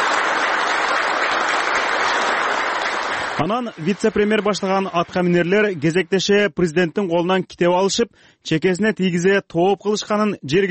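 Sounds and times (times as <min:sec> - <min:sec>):
prolonged applause at a Turkmen security committee meeting: 0:00.0 - 0:06.0
speech: 0:03.4 - 0:10.6.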